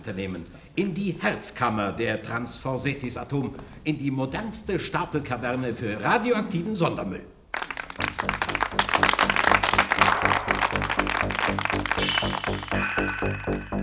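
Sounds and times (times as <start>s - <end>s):
speech: 0.0s - 7.3s, 12.0s - 13.8s
audience applause: 7.5s - 13.8s
rhythmic pulsing tonal backdrop with bright high tones: 8.0s - 13.8s.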